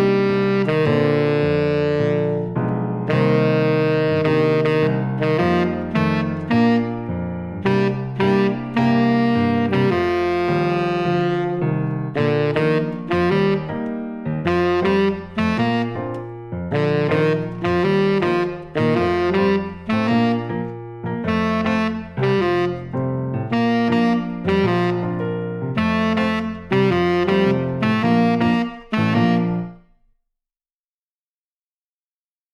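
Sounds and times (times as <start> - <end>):
tenor saxophone etude: 0.0 - 30.1.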